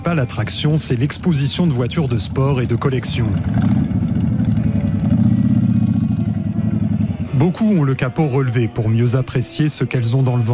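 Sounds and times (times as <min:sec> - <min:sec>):
motorcycle engines idling: 0:00.0 - 0:08.1
speech: 0:00.1 - 0:04.0, 0:07.4 - 0:10.5.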